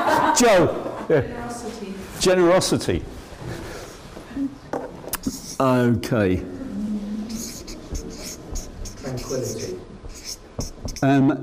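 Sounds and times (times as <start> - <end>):
speech: 0.4 - 3.2, 5.6 - 6.5, 9.3 - 9.9, 11.0 - 11.4
pen scratching across paper in handwriting: 5.2 - 5.6, 7.3 - 11.4.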